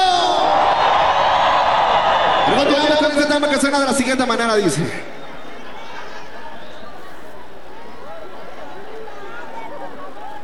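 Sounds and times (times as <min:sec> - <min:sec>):
crowd whistling: 0:00.0 - 0:08.0
crowd shouting: 0:00.0 - 0:10.4
speech: 0:02.5 - 0:05.1.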